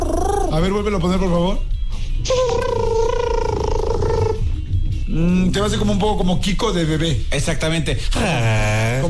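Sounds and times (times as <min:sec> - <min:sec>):
speech: 0:00.5 - 0:02.4, 0:05.1 - 0:09.0
person imitating an elephant trumpet: 0:02.2 - 0:04.5.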